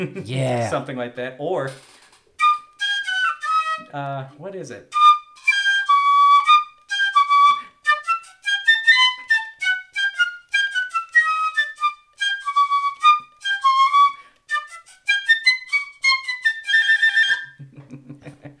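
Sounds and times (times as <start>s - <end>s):
speech: 0.0s - 2.0s, 3.8s - 5.0s
piccolo playing: 2.4s - 4.0s, 4.9s - 17.6s.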